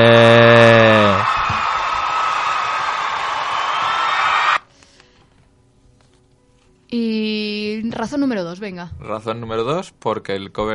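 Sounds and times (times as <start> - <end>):
crowd applauding and cheering: 0.0 - 4.7
speech: 8.0 - 10.7.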